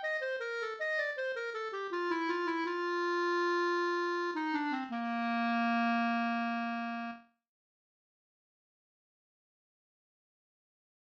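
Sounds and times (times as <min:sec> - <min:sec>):
clarinet: 0:00.0 - 0:07.4.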